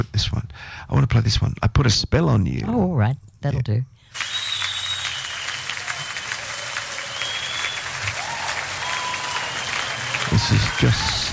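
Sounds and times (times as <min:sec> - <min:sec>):
speech: 0:00.0 - 0:04.0, 0:10.4 - 0:11.3
live concert audience clapping: 0:04.1 - 0:11.3.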